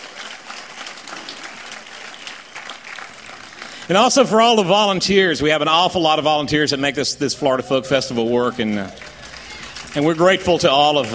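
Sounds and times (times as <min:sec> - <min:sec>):
crowd clapping: 0:00.0 - 0:05.8, 0:08.0 - 0:11.1
speech: 0:03.9 - 0:09.1, 0:10.0 - 0:11.1.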